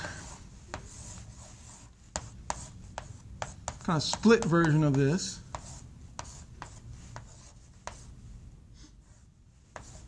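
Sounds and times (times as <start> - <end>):
writing strokes scraping: 0.0 - 8.2, 9.0 - 10.0
writing taps: 2.1 - 8.1, 9.7 - 10.0
speech: 3.9 - 5.4.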